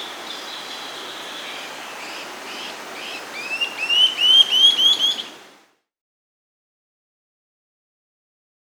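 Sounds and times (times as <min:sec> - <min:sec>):
olivaceous flatbill song of rising slurred whistled notes: 0:02.6 - 0:05.3.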